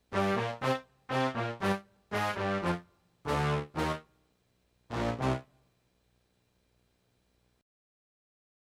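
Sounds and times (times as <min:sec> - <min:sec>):
brass instruments: 0:00.0 - 0:04.2, 0:04.9 - 0:05.6.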